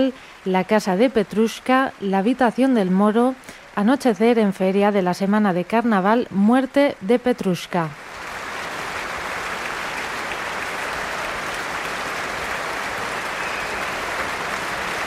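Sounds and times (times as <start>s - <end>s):
speech: 0.0s - 8.0s
concert hall applause after orchestra performance: 8.0s - 15.0s.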